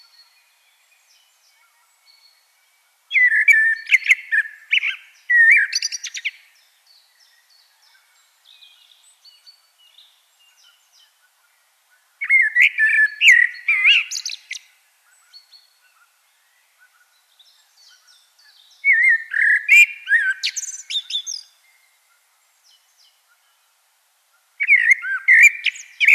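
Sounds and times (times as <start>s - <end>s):
common blackbird song: 0.0s - 26.1s
faint background chirping: 0.0s - 26.1s.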